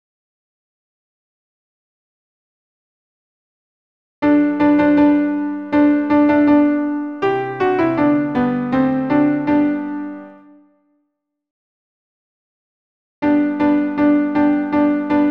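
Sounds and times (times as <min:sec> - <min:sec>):
alto piano accompaniment: 0:04.2 - 0:10.7, 0:13.2 - 0:15.2.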